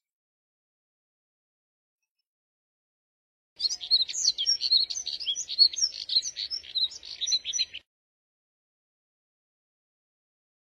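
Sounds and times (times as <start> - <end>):
Moussier's redstart twittering warble: 3.6 - 7.8.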